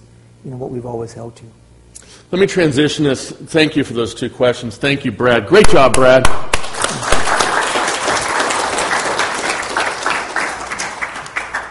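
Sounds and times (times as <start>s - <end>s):
speech: 0.4s - 1.6s, 2.3s - 6.5s
audience hard clapping: 6.5s - 11.6s.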